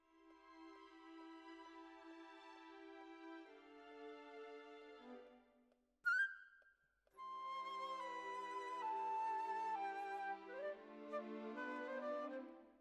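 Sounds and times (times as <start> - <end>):
oboe: 7.2 - 12.7.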